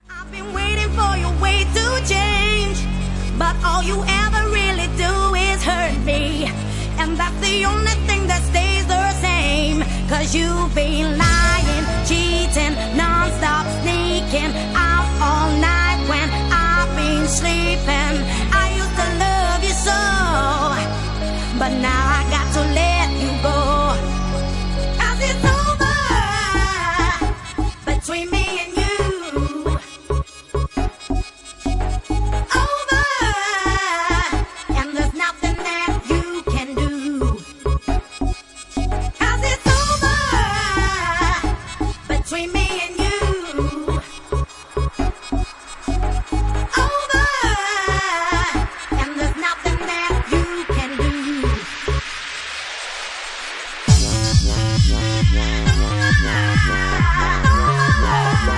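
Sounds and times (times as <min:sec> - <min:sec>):
remixed bassline music: 0:00.0 - 0:58.5.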